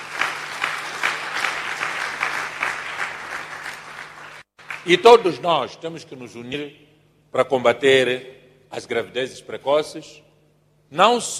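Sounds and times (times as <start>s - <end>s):
audience applause: 0.0s - 5.0s
speech: 4.8s - 10.2s, 10.9s - 11.3s.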